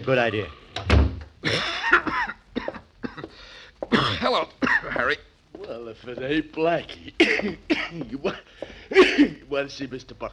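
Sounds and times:
speech: 0.0 - 0.6, 1.4 - 1.7, 3.9 - 10.3
harsh rasping hacking cough: 1.4 - 5.2, 7.1 - 9.4.

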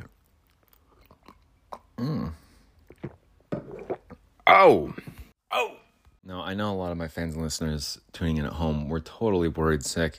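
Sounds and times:
person sipping coffee from a cup: 0.7 - 4.2
speech: 4.6 - 10.1.

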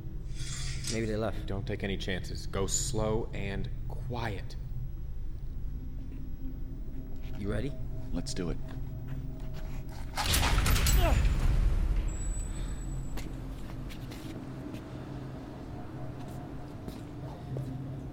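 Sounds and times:
low steady ambient hum: 0.0 - 18.1
speech: 0.9 - 4.6, 7.4 - 8.8
door creaking open: 10.1 - 13.3.

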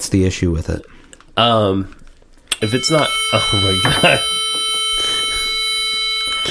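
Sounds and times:
speech: 0.1 - 2.0, 2.6 - 4.4
metronome continuous electronic tone: 2.5 - 6.4.

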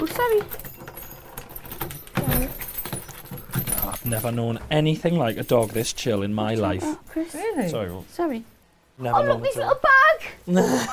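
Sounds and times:
bunch of keys jangling: 0.0 - 6.2
speech: 0.2 - 0.6, 4.0 - 10.9.

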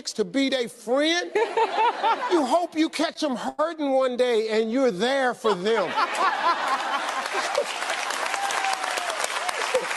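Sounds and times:
speech: 0.0 - 8.0
laughter: 1.3 - 2.7, 5.4 - 8.0
audience clapping: 6.2 - 9.9.

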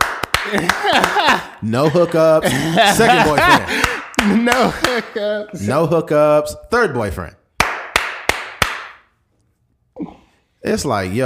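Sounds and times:
hand clap: 0.0 - 1.6, 3.3 - 5.2, 7.6 - 9.1
laughter: 0.4 - 5.7
speech: 0.5 - 7.4, 10.6 - 11.2.

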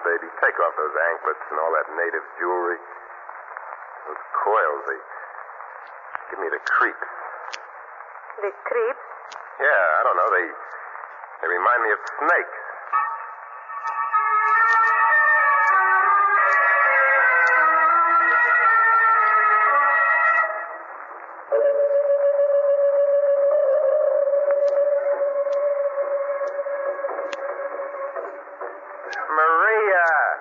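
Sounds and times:
speech: 0.2 - 3.0, 4.0 - 5.1, 5.8 - 7.6, 8.4 - 10.8, 11.4 - 12.6
music playing from a record: 13.0 - 20.9, 21.6 - 29.3.

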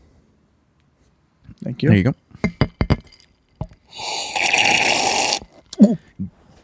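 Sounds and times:
speech: 1.6 - 2.6
slurping a drink through a straw: 3.9 - 5.6.

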